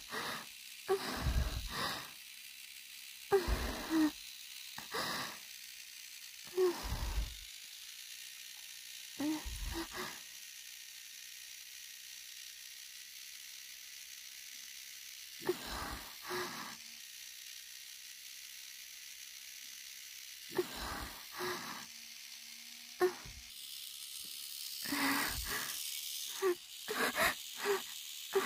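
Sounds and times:
woman moaning: 0:00.1 - 0:02.0, 0:03.3 - 0:04.2, 0:04.8 - 0:05.4, 0:06.5 - 0:07.4, 0:09.2 - 0:10.2, 0:15.4 - 0:16.8, 0:20.6 - 0:21.9, 0:23.0 - 0:23.3, 0:24.9 - 0:28.4.

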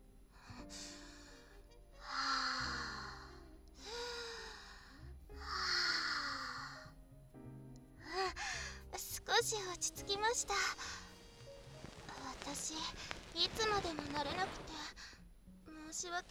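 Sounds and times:
slow deep breaths with faint sighing: 0:00.3 - 0:06.8, 0:08.0 - 0:08.9, 0:10.8 - 0:12.2, 0:13.0 - 0:13.3, 0:14.9 - 0:15.8
speech: 0:09.4 - 0:11.0, 0:12.8 - 0:15.0, 0:16.0 - 0:16.2.

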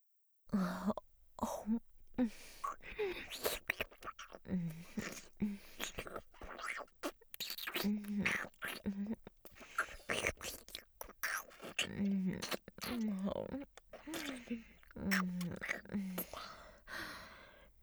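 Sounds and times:
breathing: 0:02.2 - 0:03.3, 0:04.6 - 0:06.0, 0:16.0 - 0:17.8
wet saliva licking sounds near ear: 0:02.2 - 0:17.3.

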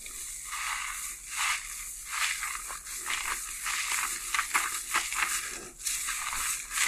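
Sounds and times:
shampoo lathering and scrubbing hair: 0:00.0 - 0:06.8.

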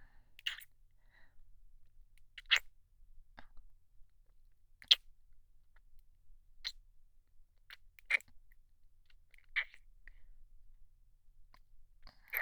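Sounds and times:
deep kissing with saliva ASMR: 0:00.4 - 0:00.7, 0:02.4 - 0:02.7, 0:04.8 - 0:05.0, 0:07.7 - 0:08.3, 0:09.4 - 0:09.8.

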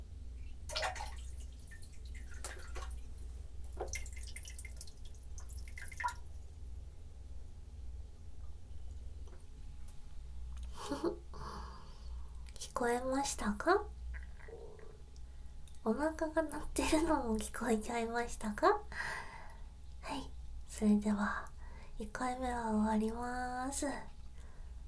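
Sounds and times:
urination: 0:00.7 - 0:06.2
speech: 0:12.8 - 0:14.0, 0:15.8 - 0:19.2, 0:20.8 - 0:24.1.

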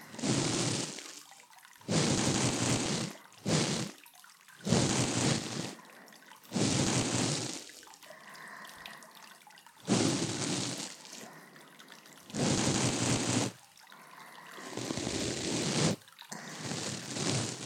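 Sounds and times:
ear cleaning after a bath recorded with a binaural microphone: 0:00.2 - 0:01.0, 0:01.9 - 0:03.9, 0:04.7 - 0:05.8, 0:06.5 - 0:07.7, 0:09.9 - 0:11.1, 0:12.4 - 0:13.6, 0:14.6 - 0:17.6.

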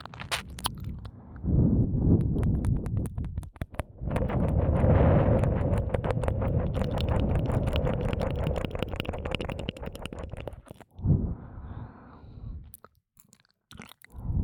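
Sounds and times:
ear licking sounds in the left ear: 0:00.0 - 0:01.2, 0:02.2 - 0:11.0, 0:12.7 - 0:14.4
suction sounds in the left ear: 0:02.2 - 0:11.0.

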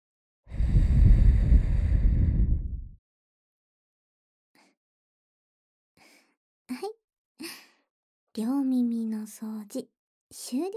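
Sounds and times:
soft breath blown into the ears: 0:00.5 - 0:02.9
speech: 0:06.7 - 0:07.6, 0:08.4 - 0:10.7.

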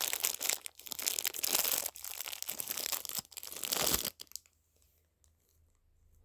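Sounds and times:
crinkly plastic package torn and crumpled open: 0:00.0 - 0:04.5.

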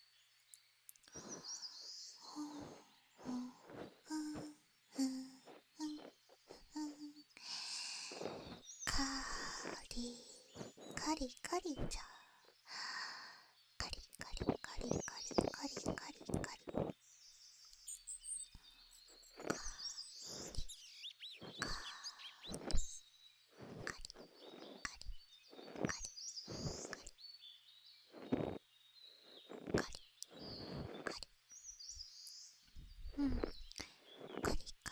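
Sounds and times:
ear cleaning ASMR: 0:01.0 - 0:01.6, 0:02.3 - 0:07.2, 0:07.8 - 0:12.0, 0:14.3 - 0:16.9, 0:19.4 - 0:20.8, 0:21.4 - 0:23.0, 0:23.6 - 0:27.1, 0:28.1 - 0:28.6, 0:29.2 - 0:31.3, 0:32.8 - 0:34.9.

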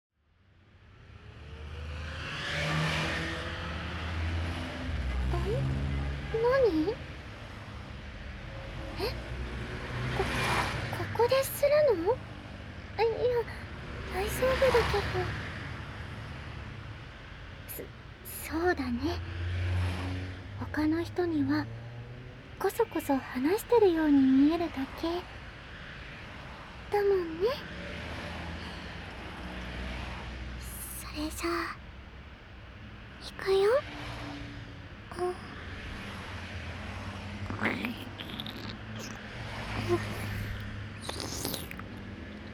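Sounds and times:
national highway traffic: 0:00.2 - 0:42.5
wet mouth sounds in right ear: 0:37.4 - 0:42.5.

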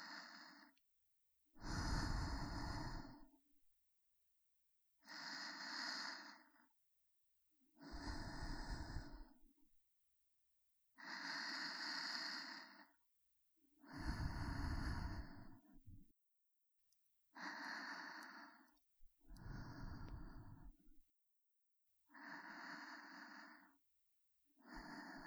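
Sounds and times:
breathing in the right and left ear: 0:00.0 - 0:00.8, 0:01.6 - 0:03.4, 0:05.1 - 0:06.7, 0:07.8 - 0:09.4, 0:11.0 - 0:13.0, 0:13.8 - 0:16.1, 0:17.4 - 0:18.7, 0:19.3 - 0:21.0, 0:22.1 - 0:23.8, 0:24.6 - 0:25.2.

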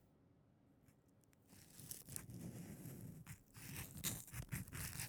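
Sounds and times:
ear cleaning in left ear: 0:01.5 - 0:05.0.

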